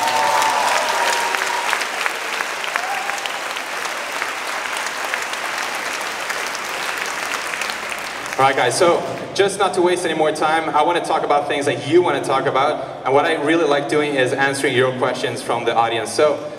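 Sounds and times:
audience applause: 0.0s - 9.4s
speech: 8.4s - 16.5s.

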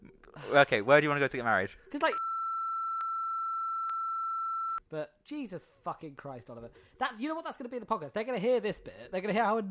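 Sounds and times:
speech: 0.5s - 2.2s, 4.9s - 9.6s
long censor beep: 2.1s - 4.8s.

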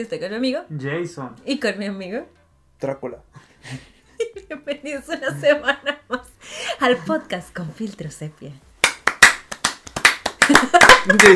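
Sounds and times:
speech: 0.0s - 8.7s, 10.5s - 11.3s
people laughing: 3.5s - 7.3s, 10.4s - 11.3s
people clapping: 8.8s - 11.3s.

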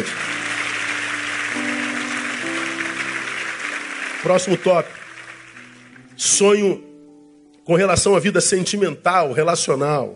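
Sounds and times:
audience applause: 0.0s - 6.4s
soft sustained keyboard chords: 0.0s - 10.1s
speech: 4.2s - 5.0s, 6.2s - 6.9s, 7.7s - 10.1s.

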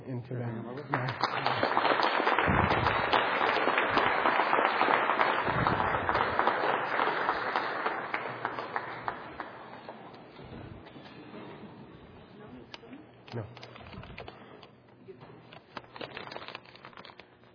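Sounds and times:
audience applause welcoming a visiting Tibetan lama: 0.8s - 10.4s.

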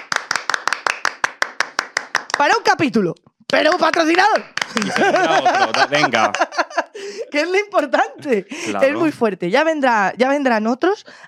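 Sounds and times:
clapping applause: 0.0s - 2.7s, 3.5s - 6.6s
speech: 2.4s - 6.4s, 7.0s - 11.2s
laughter: 4.6s - 9.2s.

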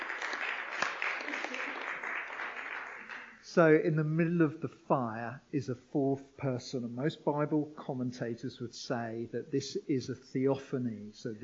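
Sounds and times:
audience applause: 0.0s - 3.4s
speech: 3.6s - 11.4s.

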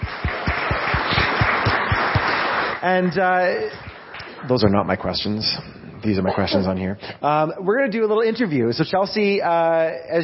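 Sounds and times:
low thumping pulse: 0.0s - 2.2s
audience applause: 0.0s - 4.4s
speech: 2.8s - 10.2s.

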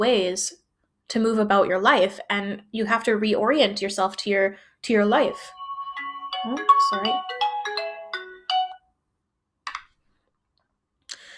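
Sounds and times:
speech: 0.0s - 5.6s, 6.4s - 7.4s
mobile phone ringtone: 5.2s - 8.9s.

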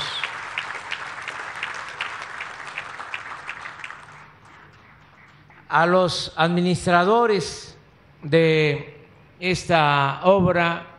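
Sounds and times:
audience applause: 0.0s - 5.6s
speech: 5.7s - 10.9s.

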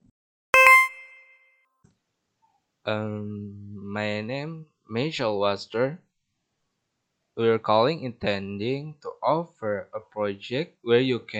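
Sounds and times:
voicemail beep: 0.6s - 1.3s
speech: 2.8s - 6.0s, 7.4s - 11.3s.

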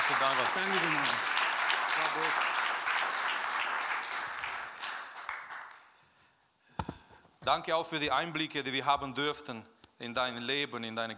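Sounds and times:
applause: 0.0s - 6.0s
speech: 0.1s - 1.4s, 2.0s - 3.2s, 7.4s - 11.1s.

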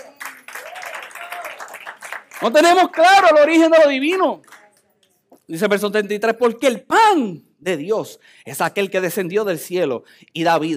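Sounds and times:
audience applause: 0.0s - 3.8s
speech: 2.4s - 4.5s, 5.5s - 10.7s.

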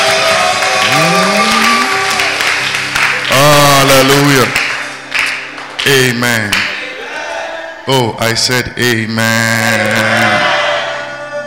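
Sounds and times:
people clapping hands for Jesus: 0.0s - 6.9s
speech: 7.9s - 10.4s.

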